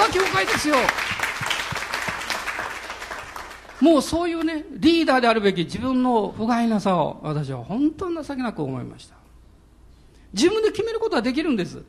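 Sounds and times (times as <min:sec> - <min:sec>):
audience applause: 0:00.0 - 0:03.8
speech: 0:00.1 - 0:01.1, 0:03.8 - 0:09.2, 0:10.3 - 0:11.8.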